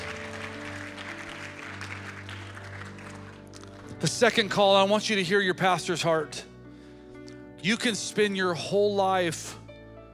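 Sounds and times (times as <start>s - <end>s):
audience applause: 0.0s - 3.9s
speech: 4.0s - 6.5s, 7.6s - 9.6s.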